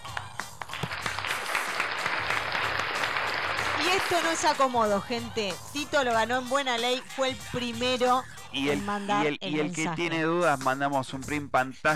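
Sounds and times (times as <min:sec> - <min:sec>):
applause: 0:00.0 - 0:04.8
speech: 0:03.9 - 0:11.9.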